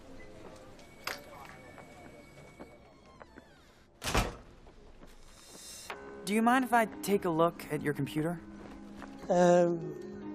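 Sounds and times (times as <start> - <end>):
door thudding shut: 4.0 - 4.5
speech: 6.3 - 8.5, 9.3 - 10.1.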